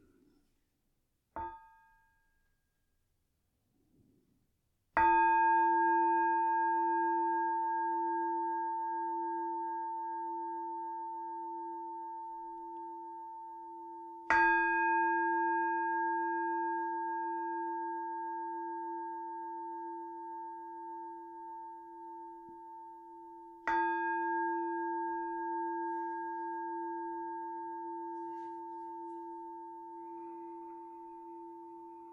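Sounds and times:
meditation bell rung: 5.0 - 32.1.

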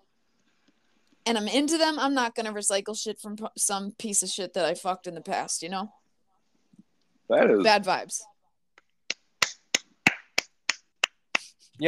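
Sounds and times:
speech: 1.3 - 6.0, 7.3 - 8.3
single hand clap: 9.1 - 11.5.

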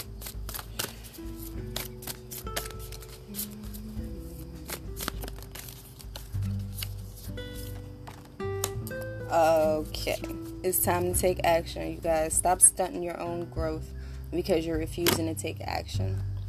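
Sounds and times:
cards being shuffled by hand: 0.0 - 10.6
speech: 9.4 - 16.3.

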